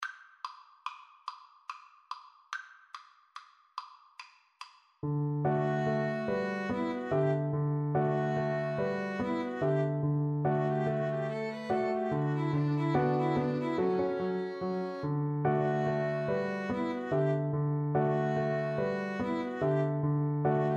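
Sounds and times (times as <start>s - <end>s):
cello: 5.4s - 20.7s
violin: 5.4s - 20.7s.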